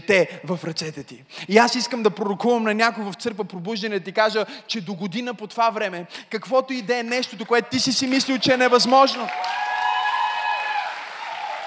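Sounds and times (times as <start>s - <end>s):
speech: 0.1s - 9.7s
audience clapping: 7.3s - 11.6s.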